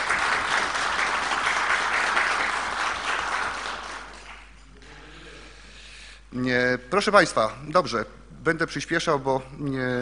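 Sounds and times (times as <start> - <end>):
group applauding for the official: 0.0 - 4.6
speech: 6.8 - 10.0.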